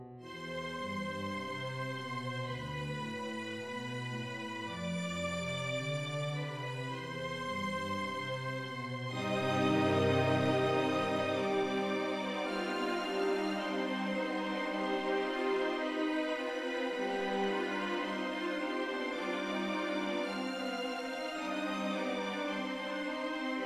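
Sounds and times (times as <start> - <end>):
short simple orchestra piece: 0.3 - 23.6.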